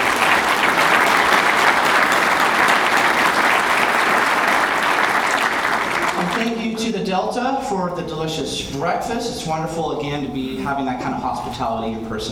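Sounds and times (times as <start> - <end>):
big round of applause: 0.0 - 6.8
speech: 7.3 - 12.3.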